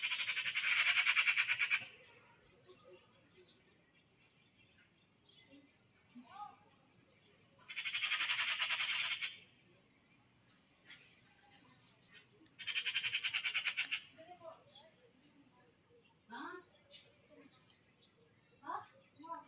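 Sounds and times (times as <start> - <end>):
Eurasian magpie rattling chatter: 0.0 - 1.9, 7.6 - 9.4, 12.6 - 14.2.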